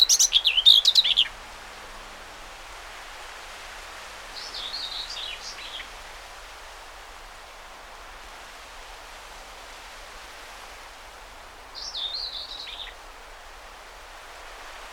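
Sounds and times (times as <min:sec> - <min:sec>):
common whitethroat song: 0:00.0 - 0:01.3.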